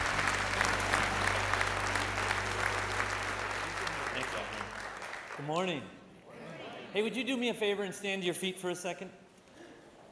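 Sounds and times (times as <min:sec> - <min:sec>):
audience applause greeting a speaker coming on stage: 0:00.0 - 0:05.6
speech: 0:05.4 - 0:06.0, 0:06.9 - 0:09.2.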